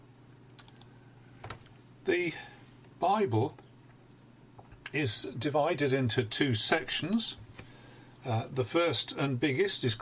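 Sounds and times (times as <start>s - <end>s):
computer clicks to bring something up on screen: 0.6s - 1.7s
speech: 2.1s - 3.6s, 4.9s - 7.4s, 8.2s - 10.0s.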